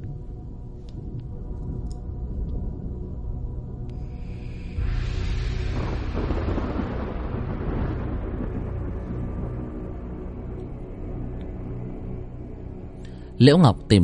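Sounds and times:
rumbling meteor shower impacts: 0:01.0 - 0:12.4
speech: 0:13.4 - 0:14.0.

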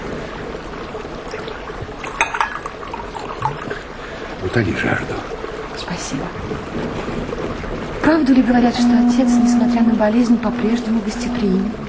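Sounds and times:
water pouring into a cup: 0:01.3 - 0:04.1
speech: 0:04.5 - 0:11.8.

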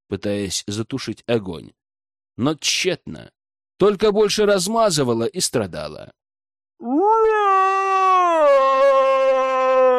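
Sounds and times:
speech: 0:00.1 - 0:01.8, 0:02.4 - 0:06.2, 0:06.8 - 0:07.4
monster howling: 0:06.8 - 0:09.9.

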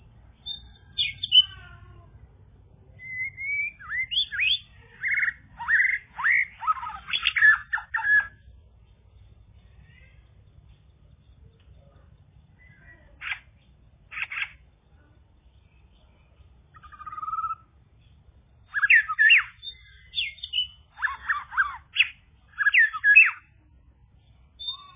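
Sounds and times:
bird chirping: 0:00.0 - 0:24.9.

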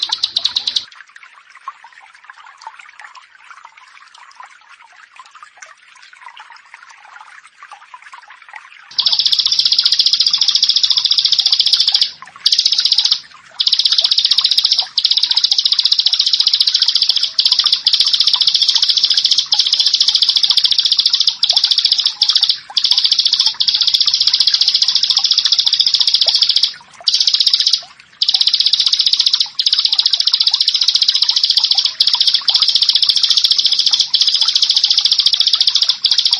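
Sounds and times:
bar-winged prinia giving buzzy trills: 0:00.0 - 0:00.9, 0:08.9 - 0:36.3.

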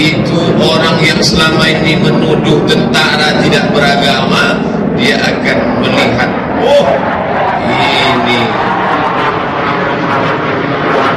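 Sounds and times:
speech: 0:00.0 - 0:08.6
airplane engine roar flying over an outdoor Maulid Nabi gathering at Korem 031 Wirabima: 0:00.0 - 0:11.1.

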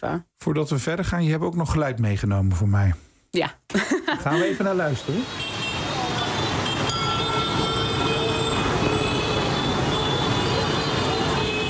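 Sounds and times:
speech: 0:00.0 - 0:05.5
dense steady city street traffic roar: 0:04.3 - 0:11.6.

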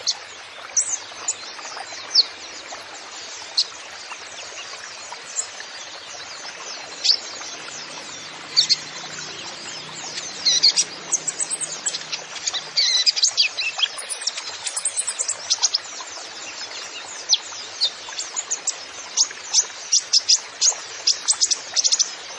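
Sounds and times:
Van Hasselt's sunbird song: 0:00.0 - 0:22.3.

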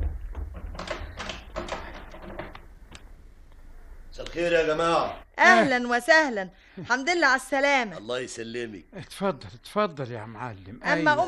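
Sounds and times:
door latch and handle clicking and rattling as a door is opened: 0:00.0 - 0:02.7
speech: 0:04.2 - 0:11.2.

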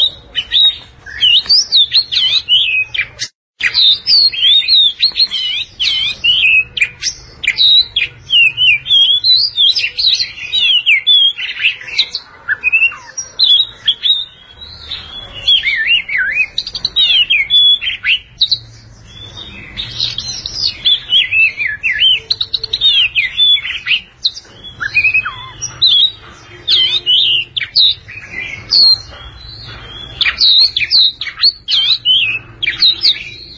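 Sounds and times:
Oriental magpie-robin song: 0:00.0 - 0:33.5.

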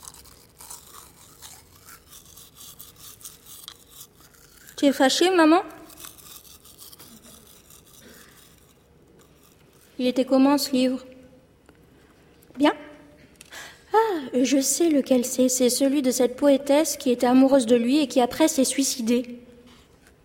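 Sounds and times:
girl brushing her teeth with a toothbrush and toothpaste: 0:00.0 - 0:10.2
speech: 0:04.8 - 0:05.8, 0:10.0 - 0:11.1, 0:14.5 - 0:19.5.

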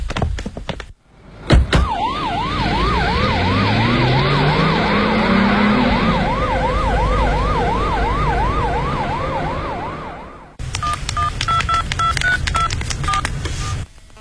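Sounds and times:
rising-and-falling siren: 0:01.2 - 0:10.6
telephone keypad tones: 0:10.8 - 0:13.8.

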